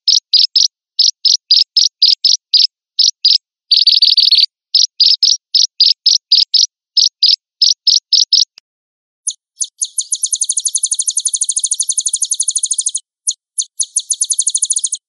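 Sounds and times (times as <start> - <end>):
sunbird song used as a lure recording: 0.0 - 8.6, 9.2 - 15.0.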